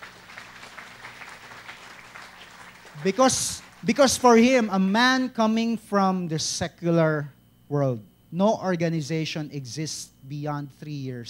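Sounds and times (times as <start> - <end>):
audience applause: 0.0 - 4.7
speech: 3.0 - 11.2.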